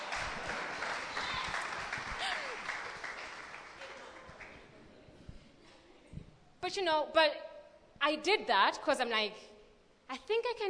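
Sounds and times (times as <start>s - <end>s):
voices and cheer: 0.0s - 2.7s
crowd applause: 0.0s - 4.7s
speech: 6.6s - 7.4s, 8.0s - 9.5s, 10.1s - 10.6s.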